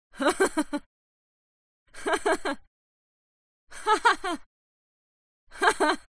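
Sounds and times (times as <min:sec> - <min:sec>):
woman laughing haha: 0:00.2 - 0:00.9, 0:02.0 - 0:02.6, 0:03.8 - 0:04.4, 0:05.6 - 0:06.1.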